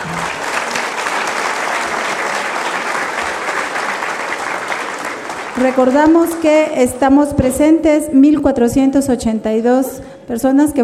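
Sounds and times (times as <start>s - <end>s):
audience applause: 0.0s - 6.9s
speech: 5.6s - 10.8s.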